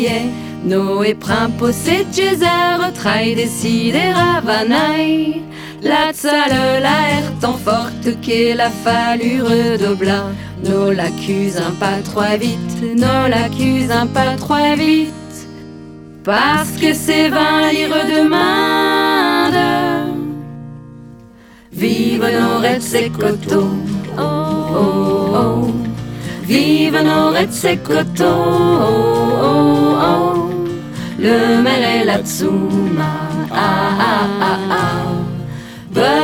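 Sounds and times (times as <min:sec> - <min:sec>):
folk song in patois: 0:00.0 - 0:36.2.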